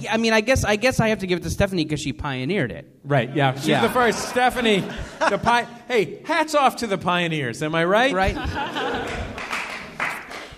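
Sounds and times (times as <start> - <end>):
speech: 0.0 - 9.3
laughter: 3.2 - 5.8, 8.1 - 10.2
tepid audience applause: 8.7 - 10.5.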